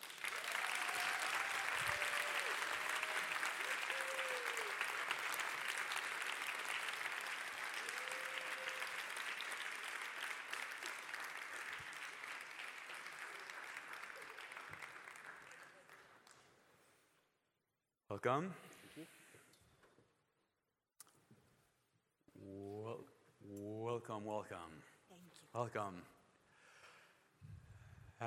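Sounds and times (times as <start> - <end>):
audience applause: 0.0 - 16.4
faint whoops and cheers: 0.2 - 5.4, 7.6 - 9.5
speech: 18.2 - 19.2, 24.0 - 26.2.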